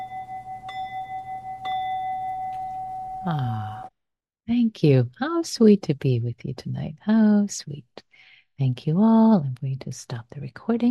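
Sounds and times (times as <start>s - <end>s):
meditation bell ringing: 0.0s - 3.9s
speech: 3.2s - 3.8s, 4.5s - 10.8s.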